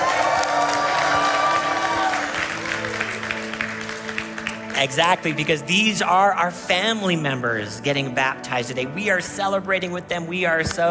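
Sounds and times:
audience cheering: 0.0 - 3.5
audience clapping: 0.0 - 5.8
speech: 4.8 - 10.8.

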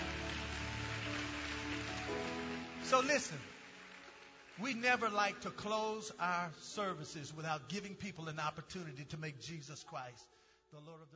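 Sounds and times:
audience hand clapping: 0.0 - 6.2
speech: 2.9 - 3.6, 4.6 - 11.1.

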